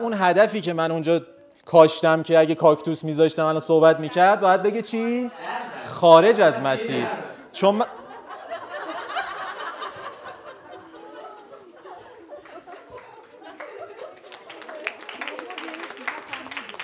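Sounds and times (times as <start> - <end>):
speech: 0.0 - 8.0
people chattering: 0.0 - 16.8
people laughing: 3.8 - 16.8
audience applause: 12.0 - 16.8.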